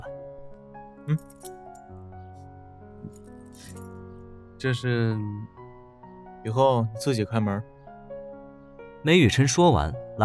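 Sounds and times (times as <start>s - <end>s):
steady sustained musical backdrop: 0.0s - 10.2s
speech: 1.1s - 1.5s, 4.6s - 5.6s, 6.4s - 7.7s, 9.0s - 10.2s
door key jingling as it is handed over: 1.2s - 1.9s, 3.1s - 4.0s.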